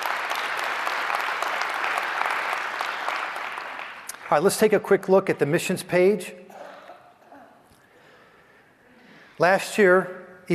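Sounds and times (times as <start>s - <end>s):
audience applause: 0.0s - 4.6s
speech: 4.3s - 6.4s, 9.4s - 10.5s.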